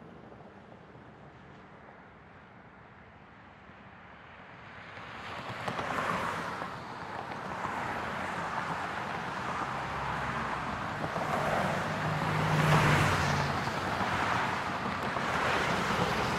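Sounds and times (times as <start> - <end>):
fast traffic pass-bys at a street intersection: 4.5 - 16.3.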